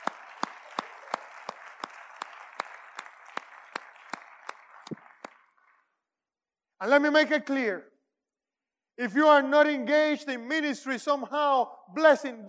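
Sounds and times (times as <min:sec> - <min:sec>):
audience clapping: 0:00.0 - 0:06.0
speech: 0:06.8 - 0:07.9, 0:09.0 - 0:12.4.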